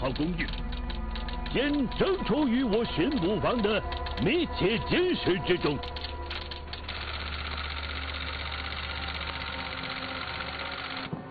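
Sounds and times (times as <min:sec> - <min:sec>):
typewriter typing a police report: 0:00.0 - 0:11.2
speech: 0:00.1 - 0:00.6, 0:01.5 - 0:06.0.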